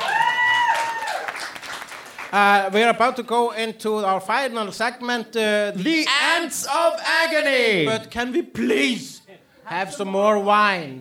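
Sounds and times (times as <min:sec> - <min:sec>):
crowd, small round of applause: 0:00.0 - 0:02.5
speech: 0:02.3 - 0:10.9.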